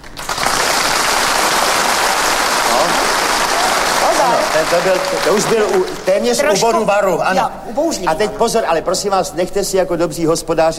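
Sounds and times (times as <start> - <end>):
warm crowd applause: 0.0 - 7.0
speech: 4.2 - 10.7.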